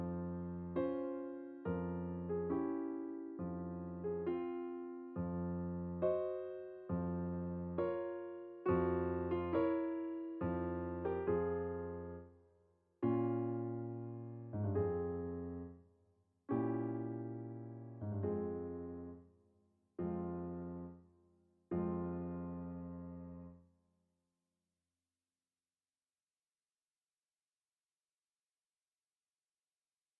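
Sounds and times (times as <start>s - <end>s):
andante con moto piano piece: 0.0s - 12.4s, 13.0s - 15.8s, 16.5s - 19.3s, 20.0s - 21.1s, 21.7s - 23.6s.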